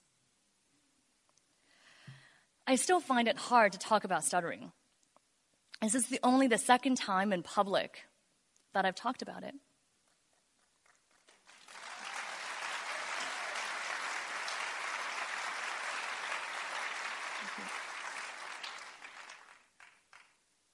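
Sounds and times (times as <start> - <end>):
speech: 2.7 - 4.8, 5.8 - 8.1, 8.7 - 9.7
audience applause: 11.1 - 20.3.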